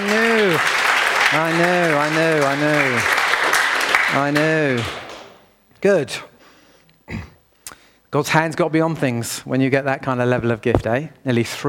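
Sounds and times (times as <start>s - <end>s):
audience clapping: 0.0s - 5.4s
speech: 1.3s - 3.2s, 4.1s - 5.0s, 5.8s - 6.3s, 7.1s - 7.3s, 8.1s - 11.6s.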